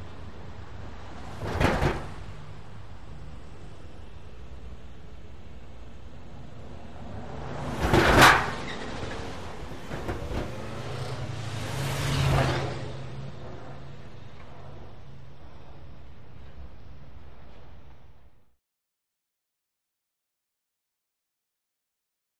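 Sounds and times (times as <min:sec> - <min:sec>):
cars passing by in light traffic: 0:00.0 - 0:18.5.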